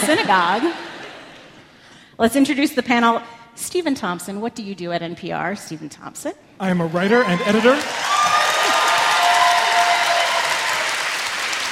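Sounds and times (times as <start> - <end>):
speech: 0.0 - 0.9, 2.2 - 8.1
audience applause and cheering: 6.7 - 11.6.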